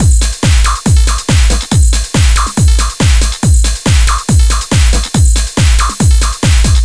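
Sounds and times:
full drum beat: 0.0 - 6.8.

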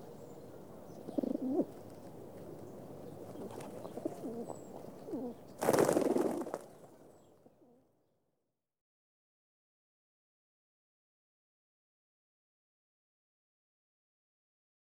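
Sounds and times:
pigeon cooing: 1.0 - 1.8, 3.3 - 6.4.

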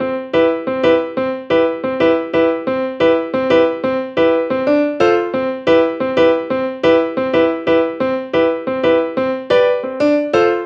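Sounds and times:
keyboard music: 0.0 - 10.6.

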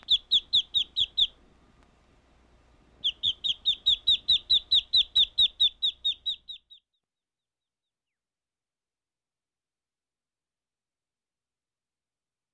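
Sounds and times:
duck peeping with thin high downslurred notes: 0.0 - 1.4, 3.0 - 6.9.

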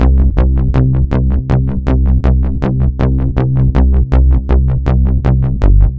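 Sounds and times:
bass smacker: 0.0 - 5.9.

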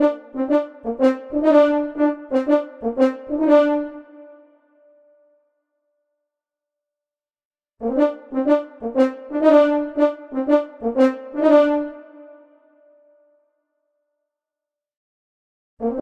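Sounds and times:
French horn: 0.0 - 4.5, 7.8 - 12.6.

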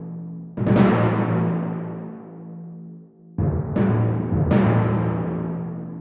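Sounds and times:
timpani: 0.0 - 5.9.

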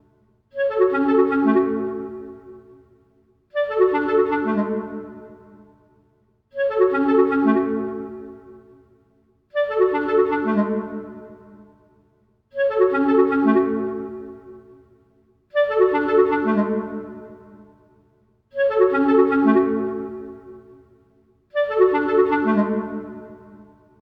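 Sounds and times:
clarinet: 0.6 - 2.8, 3.5 - 5.7, 6.6 - 8.8, 9.5 - 11.8, 12.6 - 14.8, 15.5 - 17.8, 18.6 - 20.8, 21.5 - 23.8.

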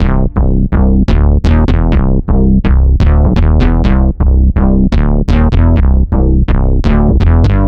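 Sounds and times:
bass: 0.0 - 7.6.

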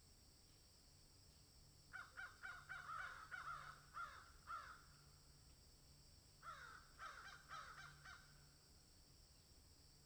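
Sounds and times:
crow giving hoarse downslurred caws: 1.9 - 4.9, 6.4 - 8.4.

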